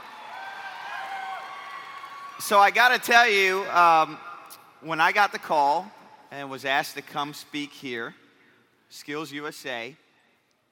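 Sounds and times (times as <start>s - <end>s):
crowd cheering and applauding: 0.0s - 2.4s
speech: 2.4s - 8.2s, 8.9s - 10.0s.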